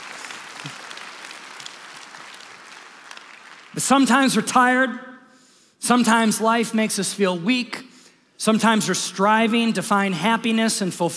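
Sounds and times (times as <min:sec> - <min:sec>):
audience applause: 0:00.0 - 0:03.8
speech: 0:00.6 - 0:00.8, 0:03.8 - 0:05.1, 0:05.8 - 0:11.1.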